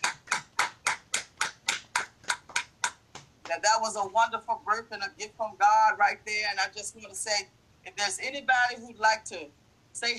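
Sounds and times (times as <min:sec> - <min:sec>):
audience clapping in unison: 0:00.0 - 0:03.3
speech: 0:03.5 - 0:10.1.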